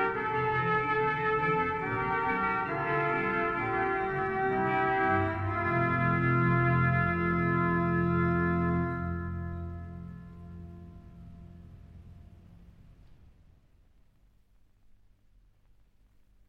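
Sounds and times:
organ: 0:00.0 - 0:12.2
brass ensemble: 0:00.0 - 0:12.6.

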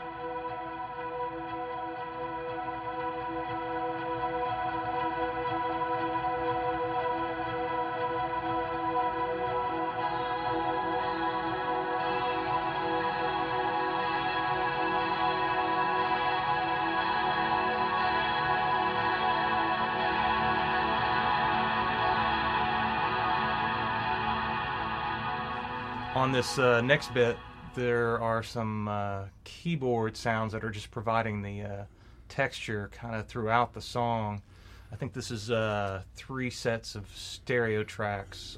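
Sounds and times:
guitar through a stereo delay looping: 0:00.0 - 0:28.4
speech: 0:26.2 - 0:38.5.

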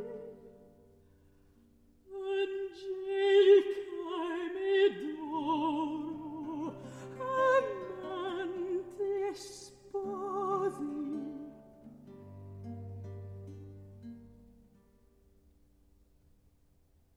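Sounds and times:
recitative singing: 0:00.0 - 0:00.6, 0:02.1 - 0:11.6.

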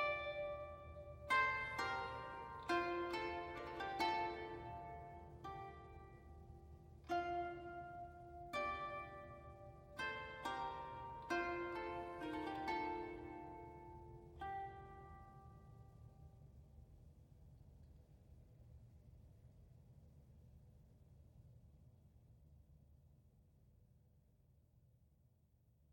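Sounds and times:
medieval harp postlude: 0:00.0 - 0:15.4.

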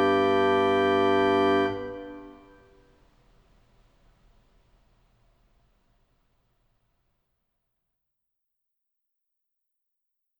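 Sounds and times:
organ chorale prelude: 0:00.0 - 0:02.6.

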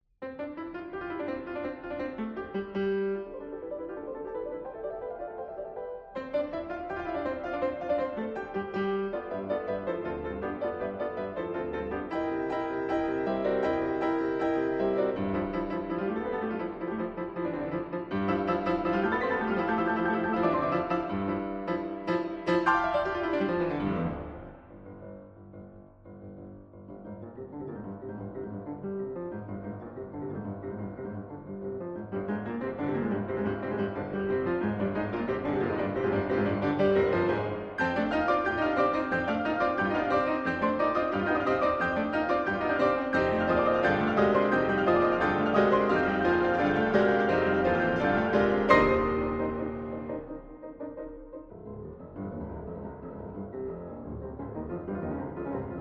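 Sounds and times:
piano duet sonata: 0:00.0 - 0:55.7.

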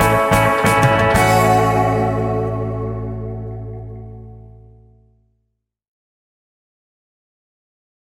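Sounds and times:
guitar: 0:00.0 - 0:05.3.

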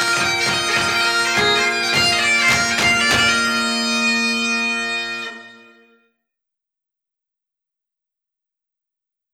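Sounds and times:
strings playing a hornpipe in Liverpool: 0:00.0 - 0:06.0.

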